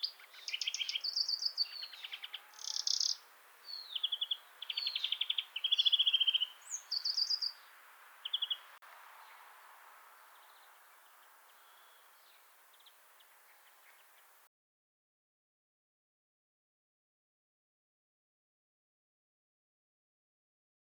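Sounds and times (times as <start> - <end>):
European greenfinch Chloris chloris song with twittering, trills and buzzy wheezes: 0.0 - 14.5.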